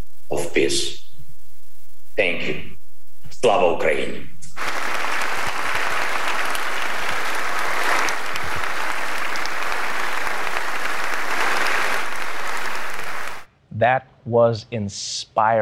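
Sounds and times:
speech: 0.3 - 1.0, 2.2 - 2.7, 3.3 - 4.7, 13.8 - 15.6
audience applause: 4.5 - 13.5.

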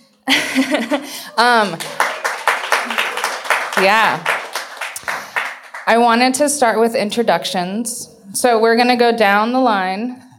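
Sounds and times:
laughter: 0.3 - 3.5
speech: 0.6 - 2.0, 3.8 - 4.3, 5.9 - 10.2
audience applause: 1.4 - 6.0.

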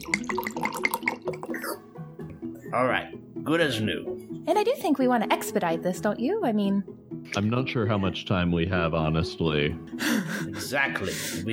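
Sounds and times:
liquid from an alchemy jug: 0.0 - 1.6
speech: 2.7 - 11.5
laughter: 7.4 - 11.5.

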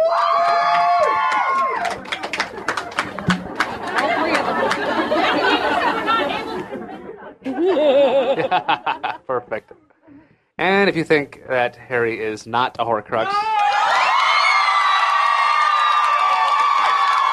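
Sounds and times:
live audience at a Harry Potter trivia show whooping and cheering: 0.0 - 6.6, 13.2 - 17.3
audience laughter: 1.6 - 9.7
lively crowd chatter: 1.8 - 7.8
speech: 8.5 - 9.8, 10.6 - 13.8.

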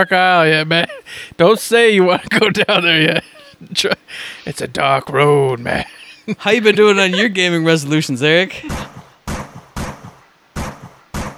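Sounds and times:
speech: 0.0 - 8.9
laughter: 0.0 - 9.2
shotgun blasts: 8.7 - 11.3.

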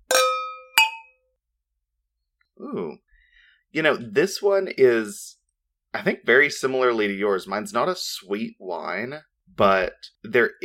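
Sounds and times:
wine glasses clinking in a toast: 0.0 - 1.2
speech: 2.6 - 3.0, 3.7 - 10.6.

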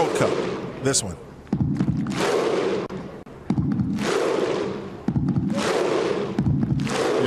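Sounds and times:
speech: 0.2 - 1.8
stadium crowd performing Viking thunder clap: 1.8 - 2.8, 3.6 - 7.2.

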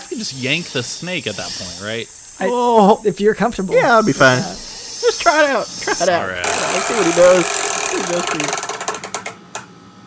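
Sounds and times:
speech: 0.2 - 8.7
spinning prize wheel ratcheting: 6.4 - 9.4.

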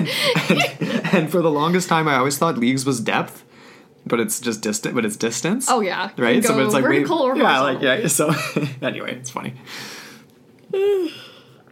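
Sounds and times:
speech: 0.1 - 10.0, 10.7 - 11.2
yawn: 10.7 - 11.6.

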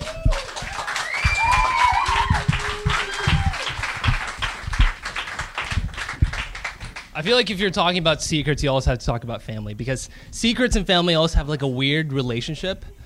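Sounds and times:
round of applause: 0.0 - 7.2
speech: 7.2 - 13.0.

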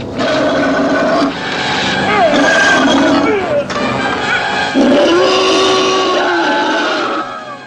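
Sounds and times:
movie creature roaring and growling while attacking: 0.2 - 1.3, 2.1 - 3.7, 4.7 - 7.6.

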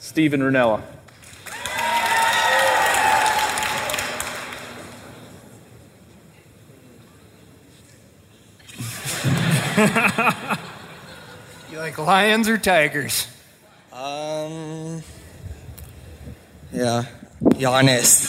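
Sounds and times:
speech: 0.2 - 1.0, 9.8 - 10.1, 12.0 - 13.4, 16.7 - 18.2
live audience cheering and applauding: 1.2 - 5.2
laughter: 8.6 - 12.1.

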